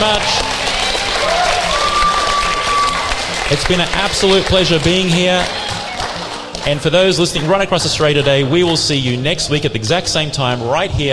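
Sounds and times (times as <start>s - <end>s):
speech: 0.0s - 0.5s, 3.5s - 5.6s, 6.6s - 11.1s
studio audience applauding: 0.0s - 8.8s.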